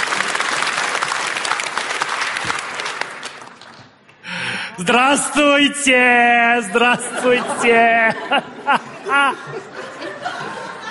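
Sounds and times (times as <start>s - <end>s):
stormy audience applause: 0.0s - 3.9s
speech: 4.8s - 9.8s
laughter: 6.7s - 10.8s.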